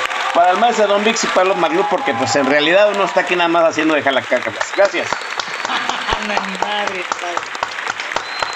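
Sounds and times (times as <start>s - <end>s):
crowd applauding: 0.0s - 8.5s
speech: 0.4s - 5.3s, 6.2s - 7.6s
voices talking and calling out: 0.8s - 7.2s
laughter: 4.1s - 7.1s.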